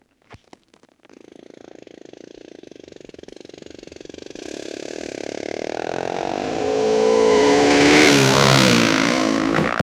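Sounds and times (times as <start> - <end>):
dirt bike riding off road: 0.3 - 9.8.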